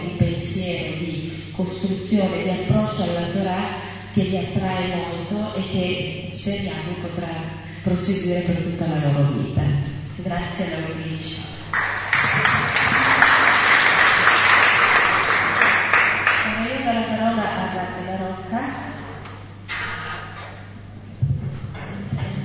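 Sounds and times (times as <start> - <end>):
low constant hum: 0.0 - 22.4
speech: 1.6 - 13.3, 17.5 - 18.9
audience clapping: 11.7 - 16.6.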